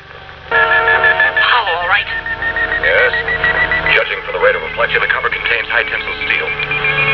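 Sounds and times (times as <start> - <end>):
high energy radar sound: 0.5 - 7.1.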